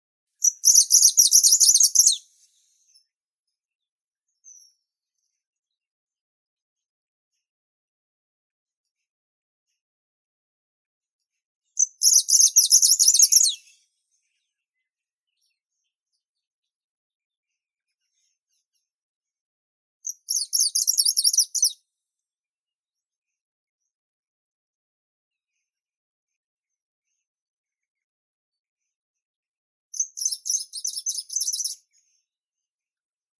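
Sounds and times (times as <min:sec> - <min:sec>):
greenish warbler Phylloscopus trochiloides singing: 0:00.4 - 0:02.2, 0:11.8 - 0:13.6, 0:20.1 - 0:21.8, 0:30.0 - 0:31.8.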